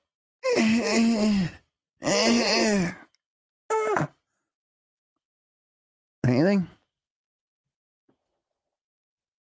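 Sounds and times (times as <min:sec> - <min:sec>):
man crying and wailing: 0:00.4 - 0:03.0
speech: 0:00.7 - 0:03.0, 0:06.2 - 0:06.8.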